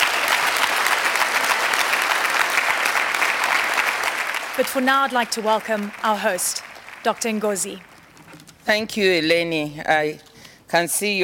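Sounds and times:
audience applause: 0.0 - 8.2
speech: 4.6 - 7.9, 8.7 - 11.2.

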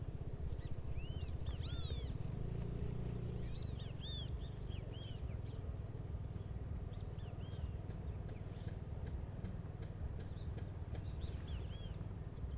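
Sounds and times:
low engine rumble: 0.0 - 12.5
noisy yellow-chested birds calling in St. George, Bermuda: 0.5 - 8.8, 10.2 - 12.5.

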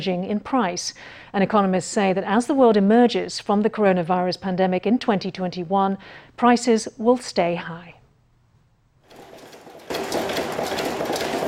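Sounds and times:
speech: 0.0 - 7.9
screw-making machine running in a factory: 9.0 - 11.4.

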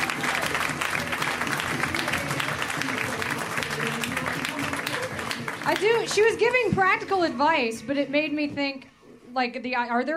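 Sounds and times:
crowd cheering and whooping: 0.0 - 5.6
audience applause for comedian: 0.0 - 6.6
speech: 5.8 - 10.1.

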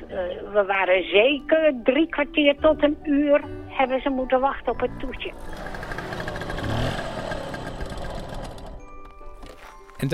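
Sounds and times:
speech: 0.1 - 6.2
small scooter engine humming: 4.6 - 9.6.

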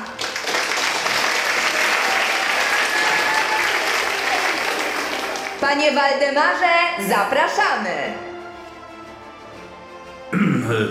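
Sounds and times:
audience applause: 0.0 - 5.6
speech: 5.6 - 8.3, 10.7 - 10.8.

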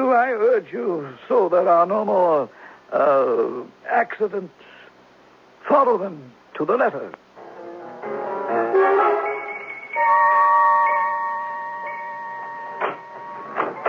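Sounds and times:
speech: 0.2 - 4.7, 5.7 - 7.2
alarm ringing: 8.5 - 13.8.

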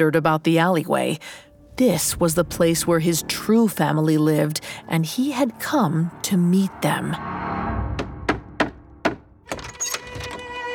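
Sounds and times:
speech: 0.0 - 7.4
steady tonal hum: 1.3 - 7.2
knocking on a wooden door: 8.0 - 9.3
clatter of rattling thuds as the door opens: 8.0 - 10.6.

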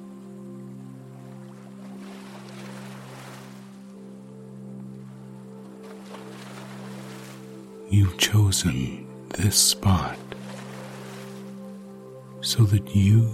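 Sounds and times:
small waves lapping a lakeshore: 0.7 - 7.9, 9.8 - 12.1
speech: 7.9 - 10.4, 12.5 - 13.3.

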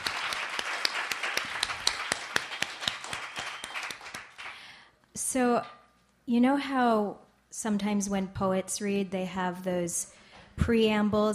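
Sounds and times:
audience round of applause at Joe's Pub: 0.0 - 4.7
speech: 5.2 - 11.3.

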